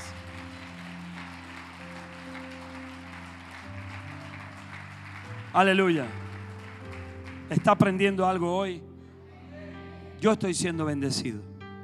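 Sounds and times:
audience applause: 0.0 - 8.0
sustained low keyboard chords: 0.0 - 11.8
speech: 5.5 - 6.2, 7.5 - 8.9, 10.2 - 11.5.

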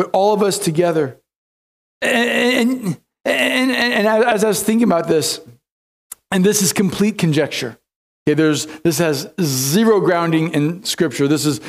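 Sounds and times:
speech: 0.0 - 1.2, 2.0 - 5.6, 6.3 - 11.6
person groaning: 2.0 - 4.0.

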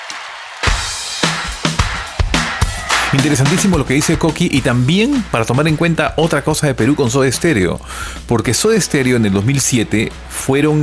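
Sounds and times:
audience clapping in a loose rhythm: 0.0 - 5.8
speech: 3.1 - 10.8.

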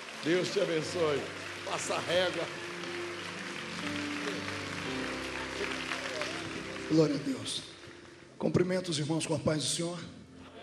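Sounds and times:
audience applause: 0.0 - 8.1
speech: 0.2 - 2.7, 3.8 - 4.0, 6.9 - 7.7, 8.4 - 10.2.

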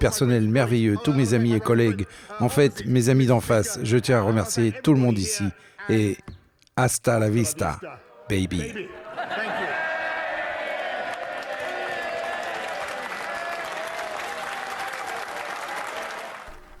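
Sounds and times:
speech: 0.0 - 9.4
laughter: 7.8 - 13.6
members of parliament applauding standing: 9.3 - 16.6.

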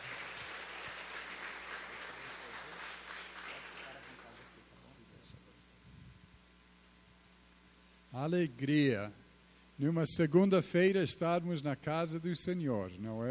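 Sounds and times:
audience applauding: 0.0 - 4.6
speech: 8.2 - 9.2, 9.8 - 13.3.

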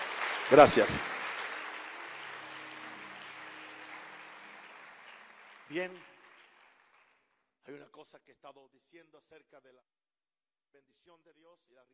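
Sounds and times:
applause: 0.0 - 7.4
speech: 0.5 - 1.2, 5.7 - 6.1, 7.7 - 10.0, 10.7 - 11.9.

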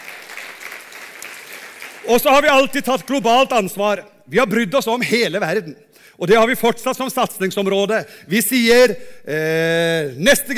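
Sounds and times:
audience applause: 0.0 - 2.2
speech: 2.0 - 10.5.

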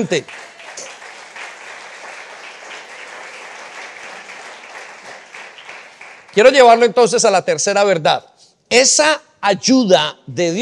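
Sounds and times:
speech: 0.0 - 0.9, 6.4 - 10.6
audience applause: 0.0 - 6.8.

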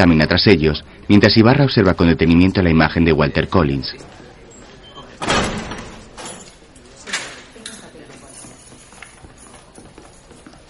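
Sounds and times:
speech: 0.0 - 4.2
jail cell door opened by police officers, heavy clank and slide: 5.1 - 7.5.

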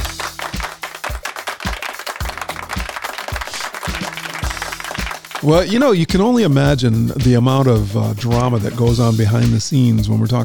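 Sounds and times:
crowd applause: 0.0 - 5.8
speech: 5.4 - 10.4.

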